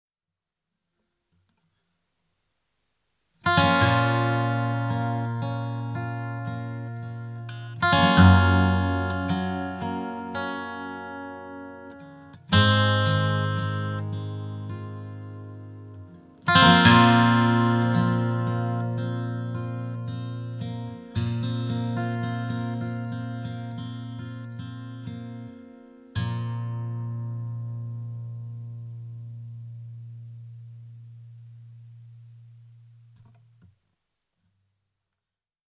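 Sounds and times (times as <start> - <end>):
Gibson L50 guitar: 3.4 - 33.8.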